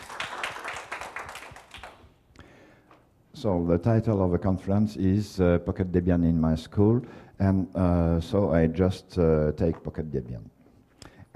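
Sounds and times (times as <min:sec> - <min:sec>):
audience applause: 0:00.0 - 0:02.0
speech: 0:03.4 - 0:10.6.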